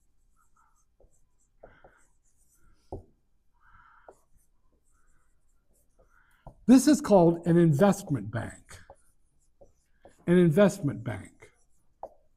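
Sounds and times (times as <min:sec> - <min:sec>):
handwriting with a pen: 0:00.0 - 0:06.6, 0:08.7 - 0:10.3, 0:11.3 - 0:12.3
speech: 0:06.7 - 0:08.6, 0:10.3 - 0:11.3.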